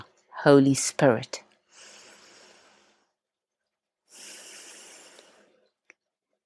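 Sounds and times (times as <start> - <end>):
speech: 0.4 - 1.4
slow deep breathing during a guided prayer: 1.7 - 3.2, 4.1 - 5.9.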